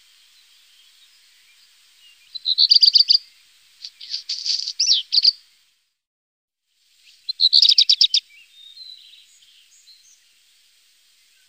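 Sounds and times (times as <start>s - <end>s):
black redstart song: 2.1s - 3.2s, 3.8s - 5.4s, 7.0s - 10.2s.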